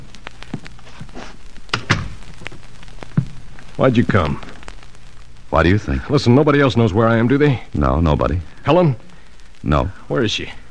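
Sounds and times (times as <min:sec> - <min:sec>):
door closing: 0:01.7 - 0:02.2
speech: 0:03.8 - 0:04.5, 0:05.5 - 0:10.6.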